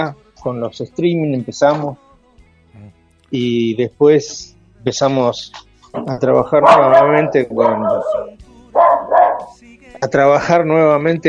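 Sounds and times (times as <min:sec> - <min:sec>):
speech: 0:00.0 - 0:02.0, 0:03.3 - 0:08.4, 0:10.0 - 0:11.2
pet female dog barking and yelping: 0:06.4 - 0:09.6.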